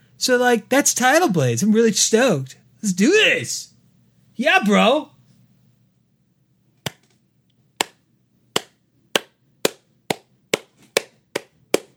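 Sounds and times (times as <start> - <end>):
speech: 0.2 - 3.7, 4.4 - 5.1
single hand clap: 6.8 - 7.1, 7.8 - 8.0, 8.6 - 11.9.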